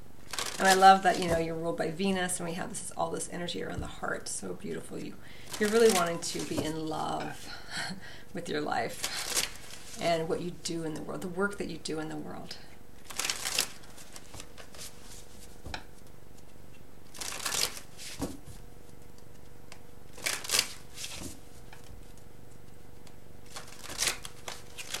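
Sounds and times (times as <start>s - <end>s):
faint steady hum: 0.0s - 24.9s
deck of tarot cards shuffling: 0.3s - 1.5s, 5.4s - 6.8s, 8.9s - 10.0s, 13.0s - 24.9s
speech: 0.6s - 9.4s, 10.0s - 12.7s.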